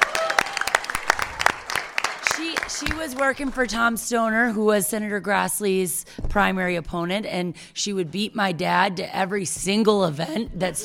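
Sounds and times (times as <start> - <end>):
audience clapping for a speaker's mother: 0.0 - 3.3
speech: 2.7 - 10.8.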